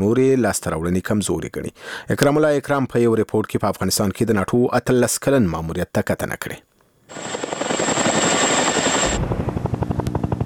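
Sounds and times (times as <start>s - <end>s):
speech: 0.0s - 7.4s
NATO helicopter rotor roar flying over Afghanistan: 7.1s - 10.4s.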